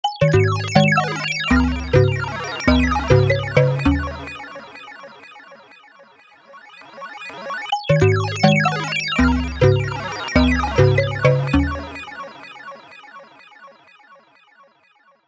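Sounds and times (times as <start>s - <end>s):
computer: 0.0s - 5.1s, 7.0s - 12.3s.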